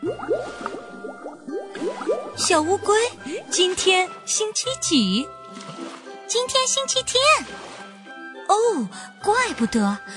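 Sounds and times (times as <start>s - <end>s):
bubbles popping in water: 0.0s - 4.8s
soft watery background: 0.0s - 10.1s
speech: 2.4s - 5.4s, 6.3s - 7.7s, 8.5s - 10.1s.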